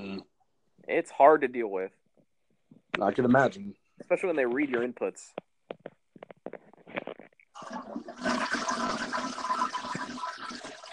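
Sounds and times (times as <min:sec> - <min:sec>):
speech: 0:00.9 - 0:02.0, 0:03.0 - 0:05.4
toilet flushing: 0:07.6 - 0:10.9.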